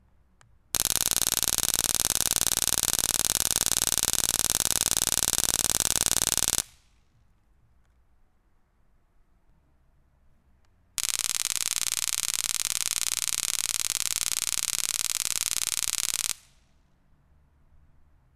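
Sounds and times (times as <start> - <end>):
taser electroshock weapon: 0.8 - 6.8, 11.0 - 16.6.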